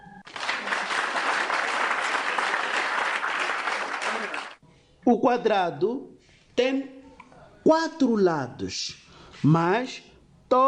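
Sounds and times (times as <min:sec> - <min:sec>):
group applause: 0:00.0 - 0:04.6
speech: 0:05.1 - 0:07.0, 0:07.6 - 0:10.6.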